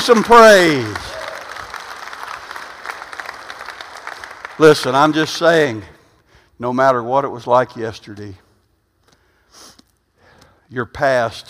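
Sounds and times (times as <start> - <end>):
speech: 0.0 - 1.2, 4.6 - 5.9, 6.6 - 8.4, 10.7 - 11.4
audience clapping: 0.0 - 5.7.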